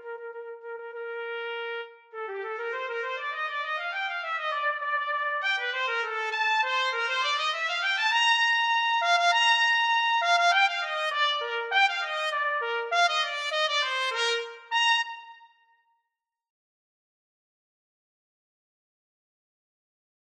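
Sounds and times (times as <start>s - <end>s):
trumpet duet: 0.0s - 15.5s.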